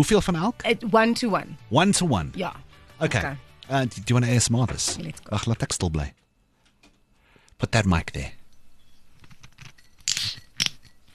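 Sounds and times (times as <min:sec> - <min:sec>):
speech: 0:00.0 - 0:06.2, 0:07.6 - 0:08.4
ruby grapefruit being opened: 0:09.2 - 0:11.1.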